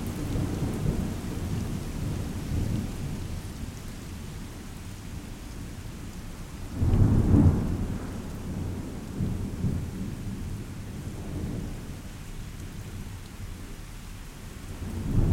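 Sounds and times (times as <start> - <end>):
thunderstorm: 0.0 - 3.5, 6.6 - 13.1, 14.6 - 15.3.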